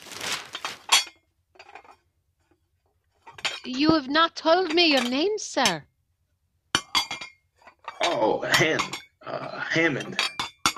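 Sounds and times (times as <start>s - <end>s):
dishes and cutlery clinking as the table is cleared: 0.6s - 2.0s, 3.2s - 5.8s, 6.8s - 9.2s, 9.8s - 10.7s
speech: 3.6s - 5.9s, 8.1s - 10.3s.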